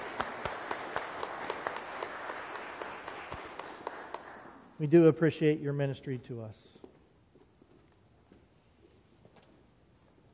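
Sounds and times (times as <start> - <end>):
audience applause for handbell choir: 0.0 - 4.8
speech: 4.8 - 6.8.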